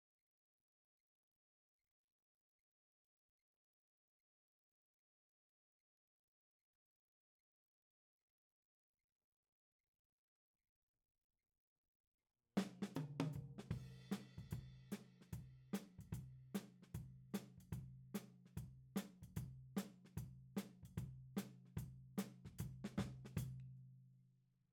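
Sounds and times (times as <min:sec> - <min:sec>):
tom drum: 0:12.6 - 0:23.5.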